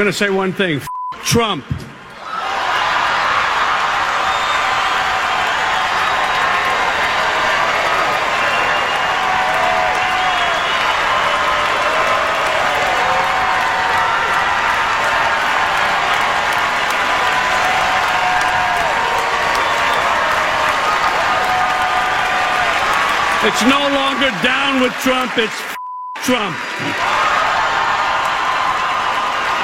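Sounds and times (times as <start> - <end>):
speech: 0.0 - 1.8, 23.4 - 25.7, 26.3 - 27.3
crowd giving a standing ovation: 2.1 - 29.6
whistles: 4.2 - 5.1, 8.3 - 9.3, 10.0 - 11.4, 19.5 - 20.1.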